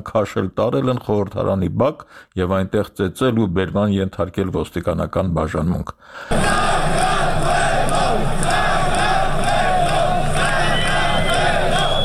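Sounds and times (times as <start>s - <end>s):
speech: 0.0s - 7.0s
protesters outside parliament chanting Georgia in unison: 6.3s - 12.0s.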